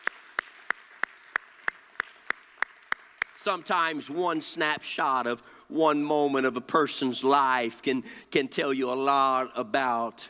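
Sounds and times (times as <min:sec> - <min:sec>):
audience clapping hands in a steady unison beat: 0:00.0 - 0:03.8
speech: 0:03.4 - 0:10.2.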